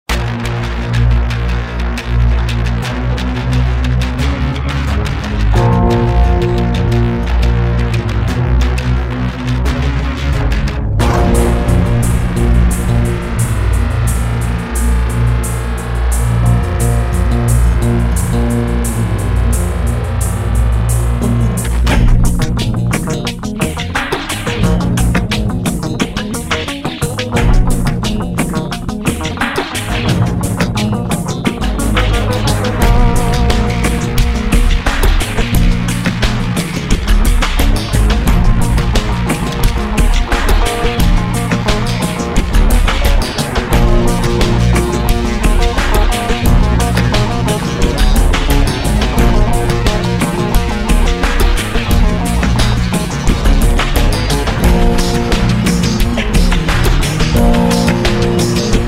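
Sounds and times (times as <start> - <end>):
remixed uptempo acid music: 0.1 - 58.8.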